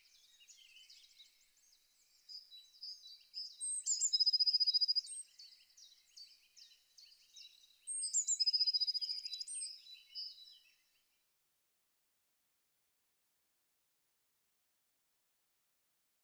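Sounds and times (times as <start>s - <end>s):
Eurasian blue tit song: 0.0s - 10.8s.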